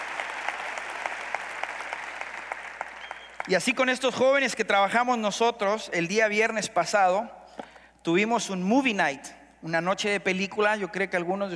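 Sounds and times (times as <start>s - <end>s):
audience applause: 0.0s - 3.6s
speech: 3.4s - 7.4s, 8.0s - 11.5s.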